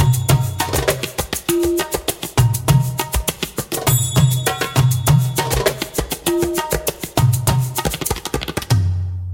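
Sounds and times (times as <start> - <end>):
fast Saidi rhythm groove: 0.0 - 9.2.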